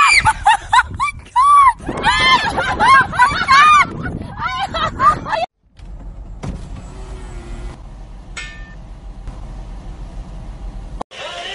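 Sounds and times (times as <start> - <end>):
person laughing: 0.1 - 5.5.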